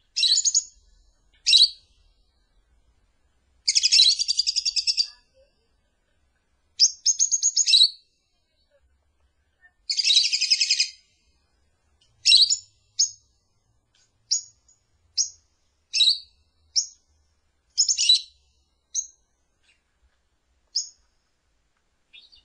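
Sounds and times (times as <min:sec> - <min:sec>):
lovebird chirping: 0:00.0 - 0:02.7, 0:03.6 - 0:05.5, 0:06.8 - 0:08.2, 0:09.8 - 0:11.2, 0:12.1 - 0:13.4, 0:14.3 - 0:17.1, 0:17.7 - 0:19.9, 0:20.7 - 0:21.1, 0:22.1 - 0:22.4.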